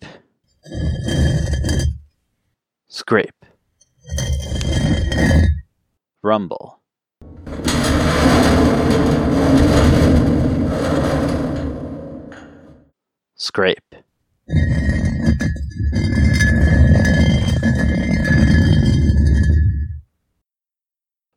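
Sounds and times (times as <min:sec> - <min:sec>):
scraping: 0:00.6 - 0:02.1, 0:03.9 - 0:05.6, 0:07.2 - 0:12.8, 0:14.5 - 0:20.0.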